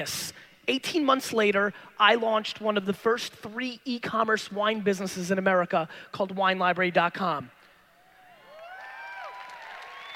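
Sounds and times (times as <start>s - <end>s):
speech: 0.0s - 7.6s
audience clapping: 8.5s - 10.1s
audience whoops and whistles: 8.5s - 10.1s.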